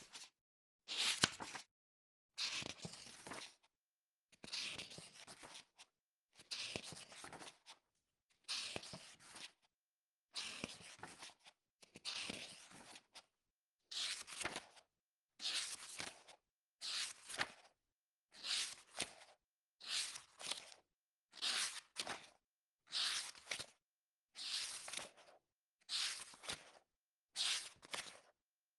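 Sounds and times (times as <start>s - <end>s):
regular book pages flipping: 0.9s - 1.7s, 2.5s - 3.6s, 4.4s - 5.9s, 6.5s - 7.8s, 10.3s - 13.3s, 13.9s - 14.8s, 15.4s - 17.8s, 18.4s - 23.8s, 24.4s - 28.3s.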